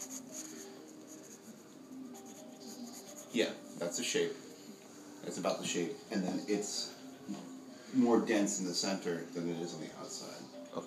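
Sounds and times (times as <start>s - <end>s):
pencil drawing and shading on paper: 0.0s - 3.4s
speech: 3.4s - 4.5s, 5.2s - 10.8s.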